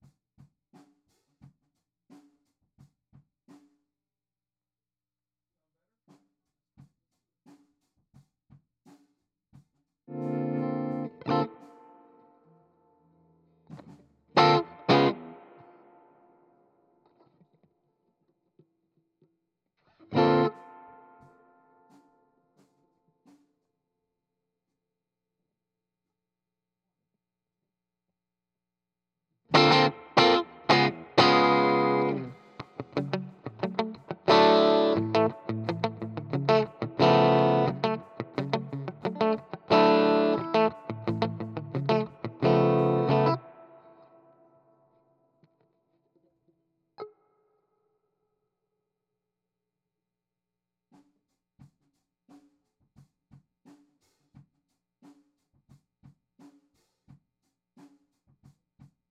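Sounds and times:
guitar: 10.1 - 12.6, 13.8 - 17.7, 19.8 - 21.8, 29.5 - 44.7.

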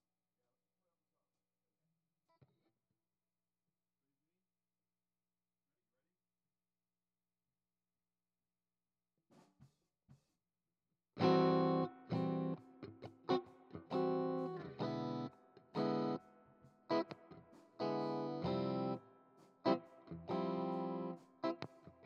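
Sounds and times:
guitar: 11.2 - 22.0.

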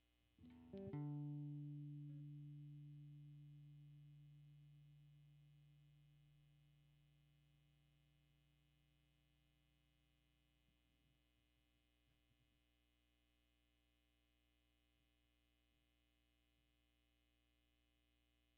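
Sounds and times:
guitar: 0.0 - 8.4.

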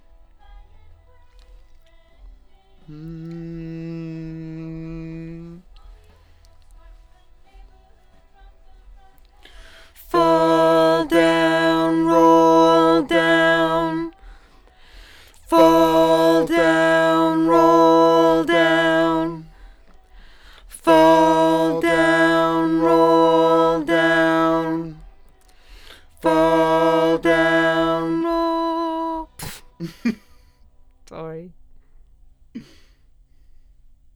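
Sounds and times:
doubled lead vocal: 2.8 - 5.8, 9.5 - 30.2.

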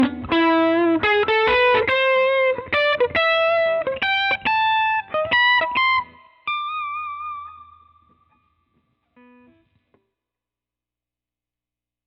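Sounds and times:
guitar solo: 0.0 - 8.5, 9.1 - 9.8.

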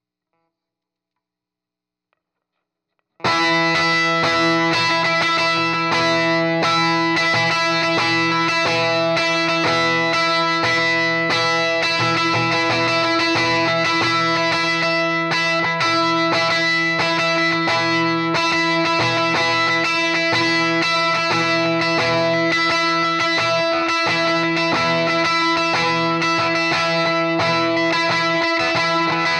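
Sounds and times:
heavy electric guitar: 3.2 - 29.3.

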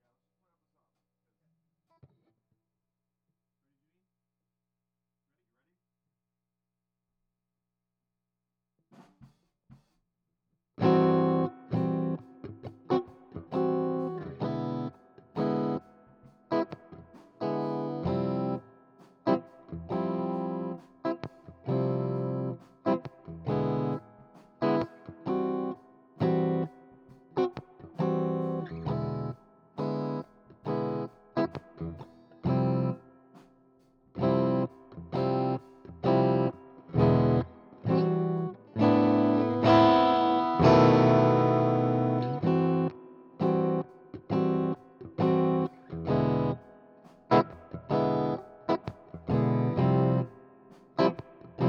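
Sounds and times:
guitar: 10.8 - 51.6.

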